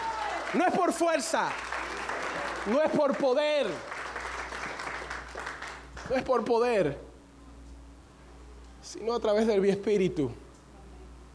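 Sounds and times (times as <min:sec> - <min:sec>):
audience applause: 0:00.0 - 0:06.2
speech: 0:00.5 - 0:01.7, 0:02.6 - 0:03.9, 0:06.1 - 0:07.1, 0:08.9 - 0:10.4.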